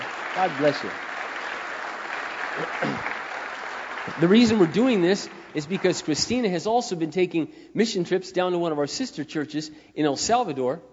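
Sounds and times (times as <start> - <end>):
church congregation applauding a long-serving member: 0.0 - 7.1
speech: 0.4 - 1.1, 2.6 - 3.1, 4.0 - 10.9.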